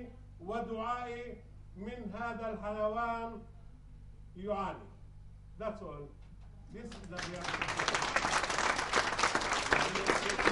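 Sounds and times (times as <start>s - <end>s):
speech: 0.0s - 3.6s, 4.4s - 5.0s, 5.6s - 8.4s
audience applause at the Safe Haven for Donkeys annual meeting: 7.0s - 10.5s.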